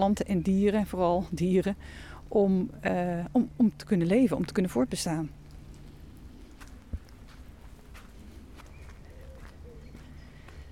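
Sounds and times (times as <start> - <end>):
speech: 0.0 - 5.4
footsteps along the edge of a castle park: 5.6 - 10.6.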